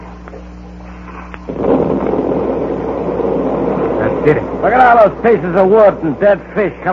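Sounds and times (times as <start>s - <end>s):
low steady hum: 0.0s - 6.9s
underwater explosive detonation blowing open a wreck: 1.5s - 6.9s
speech: 4.2s - 6.9s.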